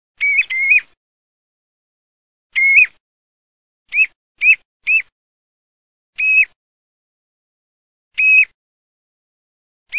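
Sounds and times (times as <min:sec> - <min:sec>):
common ringed plover whistled calls: 0:00.2 - 0:01.0, 0:02.5 - 0:03.0, 0:03.9 - 0:05.1, 0:06.2 - 0:06.6, 0:08.1 - 0:08.6.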